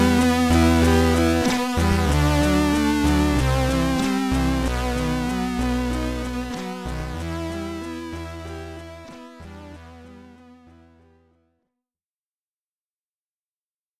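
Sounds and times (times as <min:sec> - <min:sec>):
SID chiptune music, stereo: 0:00.0 - 0:10.7.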